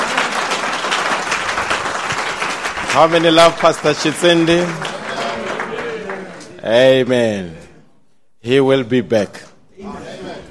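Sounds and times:
audience applause: 0.0s - 6.5s
speech: 2.9s - 4.9s, 6.6s - 7.6s, 8.4s - 10.1s.

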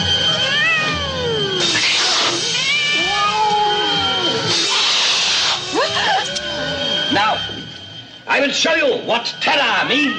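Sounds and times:
cat caterwauling: 0.2s - 7.4s, 9.8s - 10.1s
cat hissing: 0.3s - 7.2s
speech: 8.9s - 10.1s.

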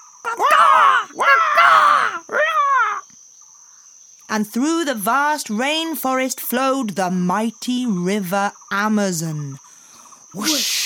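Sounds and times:
macaw parrots cawing: 0.0s - 3.1s
speech: 4.3s - 9.6s, 10.3s - 10.8s.

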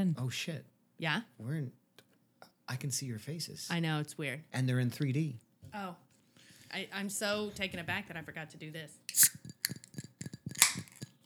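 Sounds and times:
speech: 0.0s - 1.8s, 2.7s - 6.0s, 6.7s - 9.5s
glasses clinking in a toast: 9.1s - 11.2s
tapping and handling sounds: 9.1s - 11.2s.

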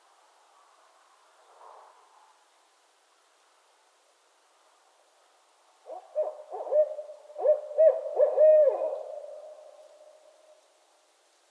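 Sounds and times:
barred owls hooting: 5.9s - 9.4s.

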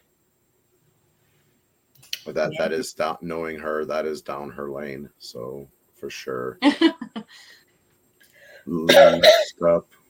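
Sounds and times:
speech: 2.3s - 7.6s, 8.7s - 10.0s
woman having a coughing fit: 8.9s - 9.5s.

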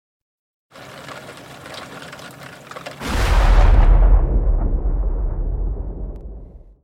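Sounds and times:
thunder from a lightning strike: 3.0s - 6.8s.

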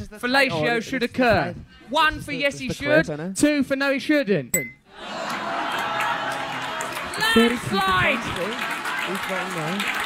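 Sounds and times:
speech: 0.1s - 5.4s, 7.2s - 10.0s
audience clapping: 5.2s - 10.0s.

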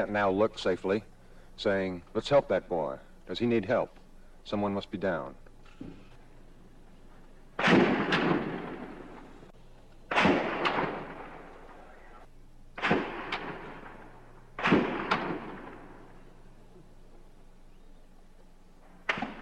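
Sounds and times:
speech: 0.0s - 6.0s
gunfire in a gun battle: 7.6s - 9.5s, 10.1s - 16.5s, 18.8s - 19.3s.

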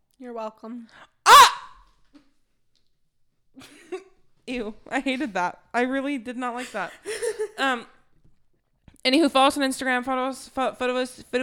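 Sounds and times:
speech: 0.2s - 1.2s, 3.6s - 8.0s, 9.0s - 11.4s
sneeze: 1.3s - 1.8s.

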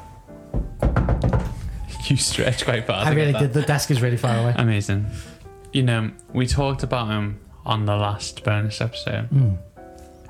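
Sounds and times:
knocking on a door: 0.5s - 2.7s, 6.5s - 7.2s
speech: 2.1s - 9.7s.

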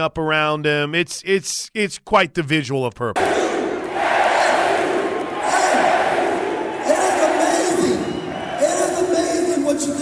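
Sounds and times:
speech: 0.0s - 3.6s
crowd of basketball fans shouting and cheering while storming the court: 3.2s - 10.0s.

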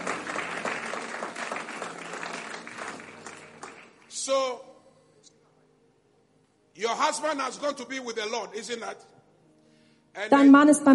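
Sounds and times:
audience applause: 0.0s - 4.1s
speech: 6.8s - 9.2s, 10.2s - 10.9s.

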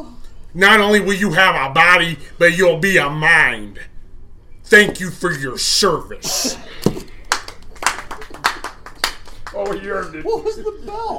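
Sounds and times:
speech: 0.0s - 3.9s, 4.7s - 7.1s, 9.6s - 11.1s
hands clapping: 6.8s - 9.9s
laughter: 9.9s - 11.1s.

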